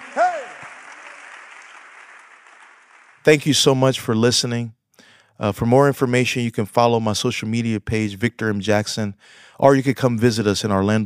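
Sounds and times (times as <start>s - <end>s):
audience clapping hands: 0.0s - 3.8s
speech: 3.2s - 4.8s, 5.4s - 11.0s.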